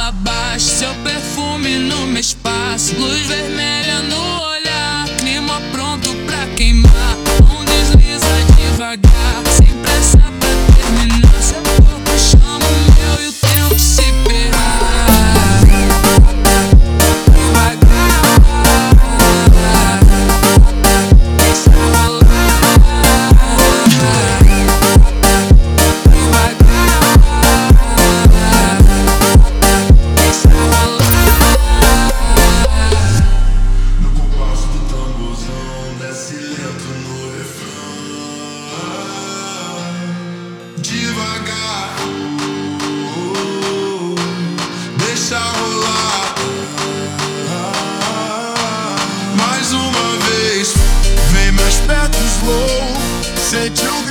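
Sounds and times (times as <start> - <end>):
slowed montagem music: 6.9 - 36.0, 50.7 - 54.0.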